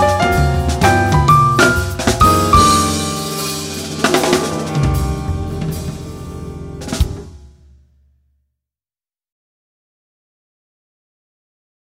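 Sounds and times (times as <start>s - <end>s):
jazz blues piano with piano soloist: 0.0s - 7.4s.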